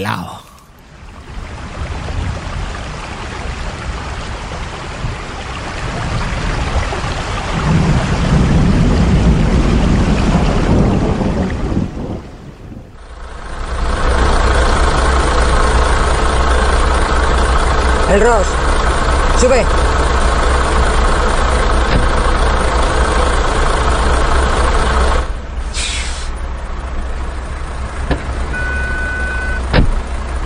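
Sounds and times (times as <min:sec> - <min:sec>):
speech: 0:00.0 - 0:00.4, 0:18.1 - 0:18.6, 0:19.4 - 0:19.8
heavy rain pouring down: 0:00.0 - 0:25.5
truck engine idling: 0:12.9 - 0:30.4.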